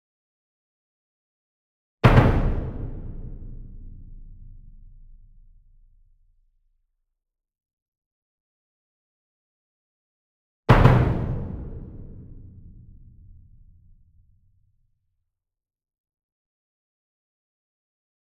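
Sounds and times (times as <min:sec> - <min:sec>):
single 66 inch drum struck with double soft beater, medium: 0:02.0 - 0:05.8, 0:10.7 - 0:14.0.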